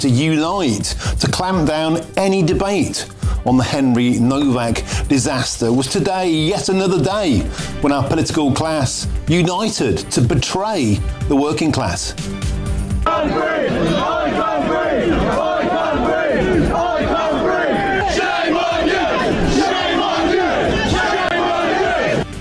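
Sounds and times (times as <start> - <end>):
speech: 0.0 - 12.5, 13.1 - 15.4
angry crowd in Southampton shouting at police: 13.0 - 22.2.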